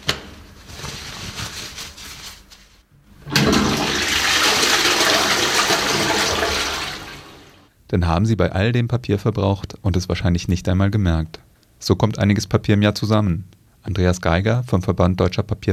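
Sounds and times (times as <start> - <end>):
toilet flushing: 3.2 - 7.7
speech: 7.9 - 15.7.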